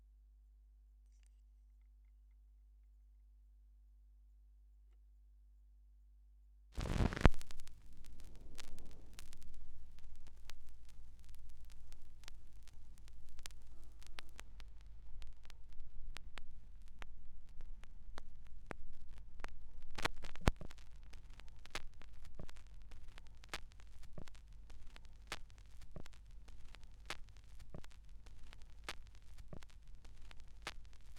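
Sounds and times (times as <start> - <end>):
vinyl record noise: 6.8 - 31.1.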